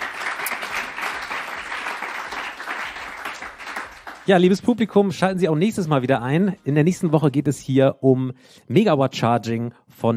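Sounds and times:
audience applause: 0.0 - 4.5
speech: 4.3 - 10.1.

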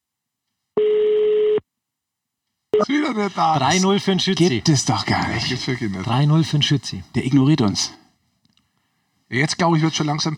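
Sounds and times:
telephone ringing tone: 0.8 - 1.6
speech: 2.8 - 8.0, 9.3 - 10.3.

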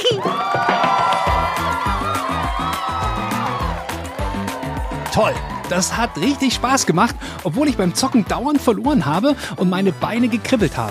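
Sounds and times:
applause: 0.2 - 8.3
speech: 5.2 - 10.8.

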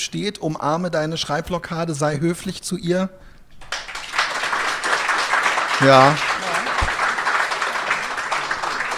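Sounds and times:
speech: 0.0 - 3.3, 5.8 - 6.4
polite audience applause: 3.6 - 8.9.

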